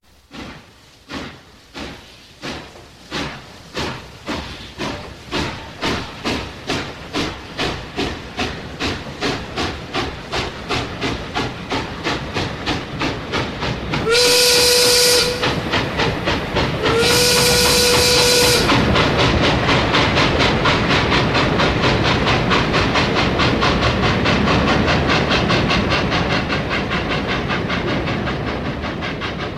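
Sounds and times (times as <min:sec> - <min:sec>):
steam locomotive chuffing: 0:00.0 - 0:29.5
steam locomotive whistle blasts: 0:14.0 - 0:15.6, 0:16.8 - 0:18.8.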